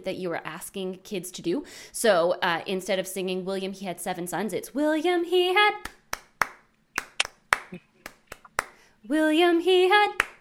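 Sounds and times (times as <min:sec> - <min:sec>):
speech: 0:00.0 - 0:06.0, 0:09.0 - 0:10.3
hands clapping a rhythm: 0:05.8 - 0:08.8, 0:10.0 - 0:10.3.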